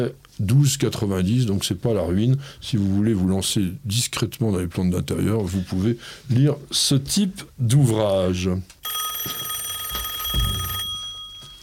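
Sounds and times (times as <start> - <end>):
speech: 0.0 - 9.5
telephone ringing: 8.8 - 11.6.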